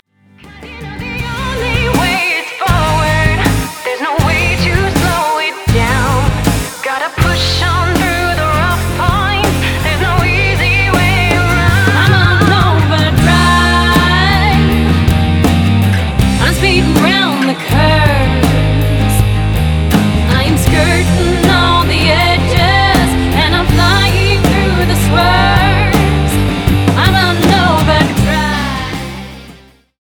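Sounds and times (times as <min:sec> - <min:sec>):
overdrive distortion: 0:00.3 - 0:29.9.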